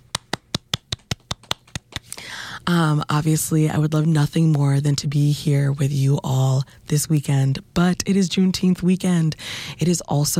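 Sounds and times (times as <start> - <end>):
hand clapping: 0.0 - 2.2
speech: 2.7 - 10.3.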